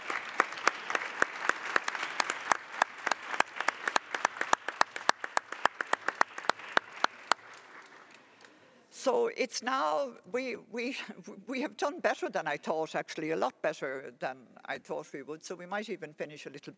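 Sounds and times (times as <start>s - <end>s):
round of applause: 0.0s - 8.6s
speech: 9.0s - 16.7s.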